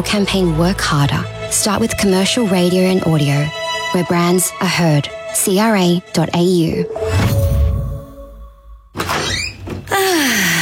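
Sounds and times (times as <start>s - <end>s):
speech: 0.0s - 7.4s
sustained tone: 6.5s - 8.9s
door creaking as it swings: 9.0s - 10.0s.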